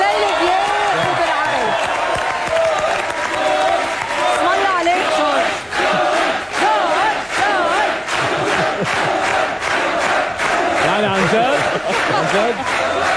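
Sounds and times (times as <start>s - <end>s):
audience shouts and whoops: 0.0s - 5.2s
live audience cheering and applauding: 0.0s - 13.1s
laughter: 5.8s - 6.4s, 7.6s - 9.6s, 10.8s - 13.1s.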